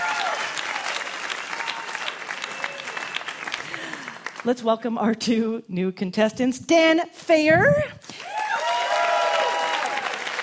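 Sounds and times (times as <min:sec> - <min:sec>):
audience applause for two quiz contestants: 0:00.0 - 0:04.5, 0:08.1 - 0:10.4
speech: 0:04.4 - 0:08.0.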